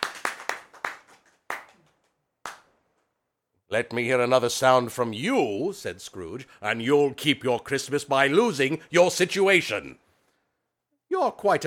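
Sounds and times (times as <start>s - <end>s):
one person clapping: 0.0s - 2.8s
speech: 3.7s - 10.0s, 11.2s - 11.6s.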